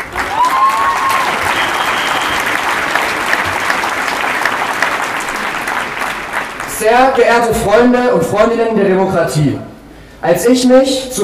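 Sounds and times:
crowd applause at outdoor rally: 0.0 - 7.5
speech: 6.9 - 11.2.

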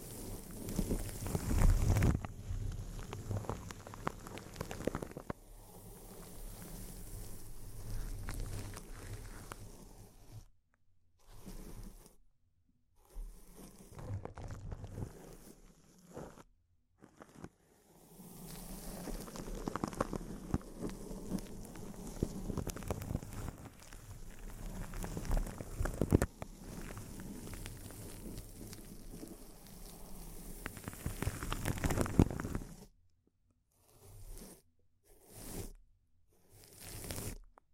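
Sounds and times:
intense crinkling of material: 0.0 - 5.4, 6.2 - 9.6, 13.9 - 15.2, 18.4 - 32.8.

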